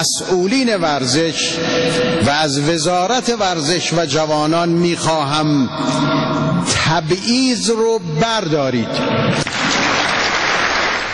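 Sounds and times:
speech: 0.0s - 9.8s
audience applause: 9.4s - 11.1s.

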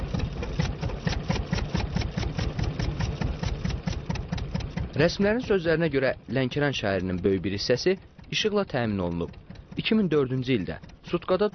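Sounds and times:
petrol-powered electricity generators running in Lankaran: 0.0s - 11.5s
speech: 5.0s - 11.5s.

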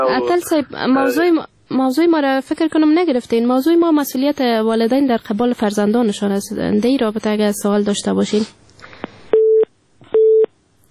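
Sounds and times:
speech: 0.1s - 8.6s
telephone busy tone after a call is disconnected: 9.4s - 10.5s.

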